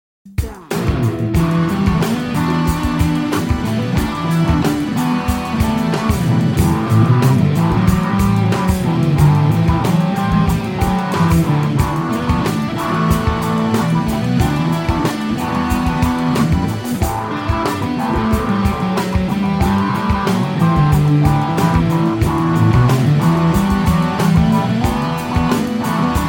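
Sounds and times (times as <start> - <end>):
midnight funk instrumental music: 0.2 - 26.2.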